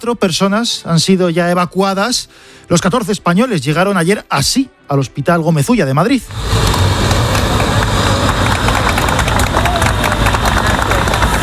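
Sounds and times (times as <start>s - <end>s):
speech: 0.0s - 7.0s
crowd applauding at the hospital doors: 6.4s - 11.4s.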